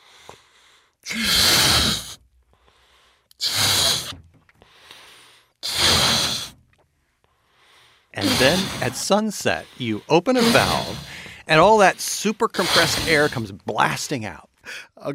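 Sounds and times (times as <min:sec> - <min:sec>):
speech: 0:01.0 - 0:01.6, 0:08.4 - 0:15.1
balloon being blown up: 0:01.1 - 0:02.2, 0:03.4 - 0:04.2, 0:05.6 - 0:06.6, 0:08.2 - 0:09.1, 0:10.4 - 0:11.5, 0:12.6 - 0:13.4.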